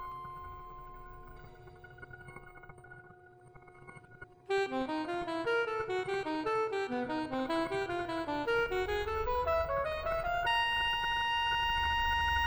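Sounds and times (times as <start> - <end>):
MIDI saxophone: 4.5 - 12.2.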